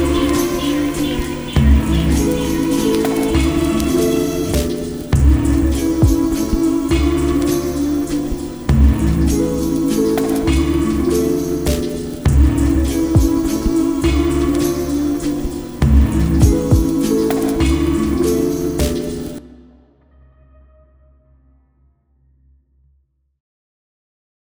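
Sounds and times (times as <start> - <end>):
waltz music: 0.0 - 19.5.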